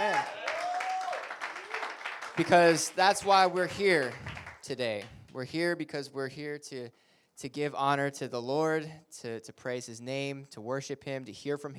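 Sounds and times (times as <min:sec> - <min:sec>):
audience round of applause: 0:00.0 - 0:05.1
speech: 0:02.4 - 0:11.7.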